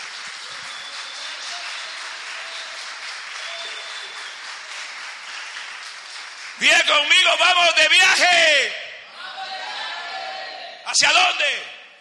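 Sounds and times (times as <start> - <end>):
audience applause: 0.0 - 6.9
speech: 6.6 - 8.8, 10.9 - 11.7.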